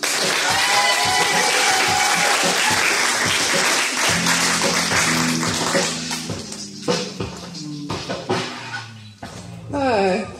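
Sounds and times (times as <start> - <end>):
audience applauding: 0.0 - 6.6
sustained low musical notes: 3.2 - 10.3.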